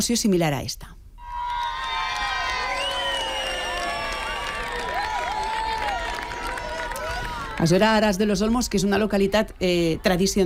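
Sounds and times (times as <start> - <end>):
speech: 0.0 - 1.0, 7.6 - 10.4
large crowd cheering and shouting outdoors during eclipse: 1.2 - 7.8
crowd clapping: 1.3 - 8.5.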